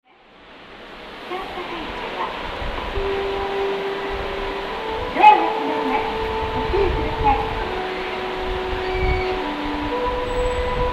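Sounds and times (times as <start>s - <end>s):
melody: 2.3s - 10.9s.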